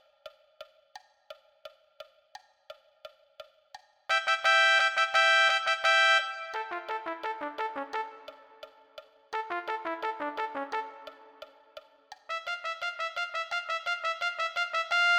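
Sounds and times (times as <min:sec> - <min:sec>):
trumpet: 0:04.1 - 0:15.1.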